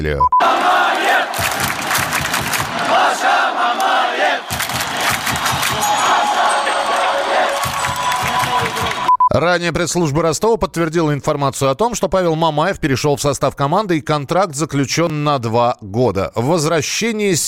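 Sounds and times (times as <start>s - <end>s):
speech: 0.0s - 0.6s, 8.9s - 17.4s
Rostov football fans in the stands chanting a name: 0.4s - 1.8s, 2.6s - 9.1s.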